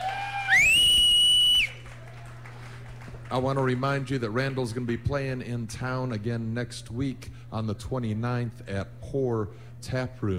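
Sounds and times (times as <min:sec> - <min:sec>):
shrill whistle: 0:00.2 - 0:01.9
speech: 0:03.3 - 0:10.3.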